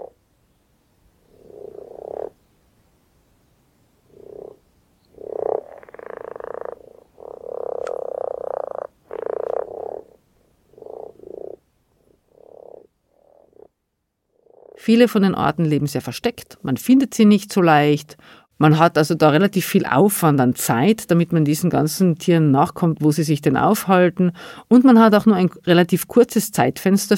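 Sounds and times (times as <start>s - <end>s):
frogs calling and croaking: 0.0s - 0.2s, 1.2s - 2.6s, 4.0s - 15.4s
speech: 14.9s - 27.1s.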